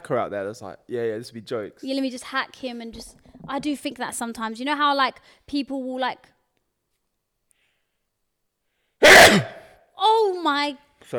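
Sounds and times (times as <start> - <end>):
speech: 0.1 - 6.4, 10.2 - 11.1
loud sneeze into microphone: 9.0 - 9.8.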